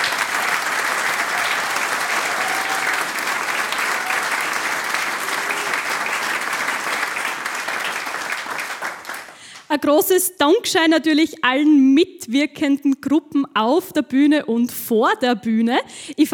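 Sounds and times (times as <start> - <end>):
audience applause: 0.0 - 9.7
speech: 9.7 - 16.3.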